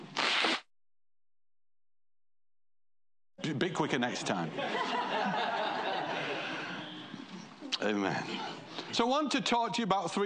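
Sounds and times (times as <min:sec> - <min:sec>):
person blowing nose: 0:00.0 - 0:00.7
speech: 0:03.5 - 0:05.6, 0:07.8 - 0:10.2
laughter: 0:04.4 - 0:07.3.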